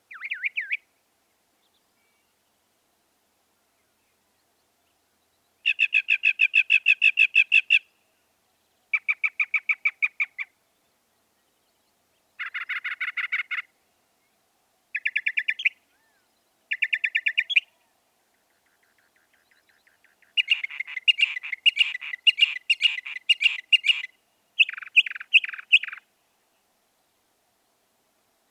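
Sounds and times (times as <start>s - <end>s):
Northern mockingbird song of repeated notes: 0.0s - 28.5s.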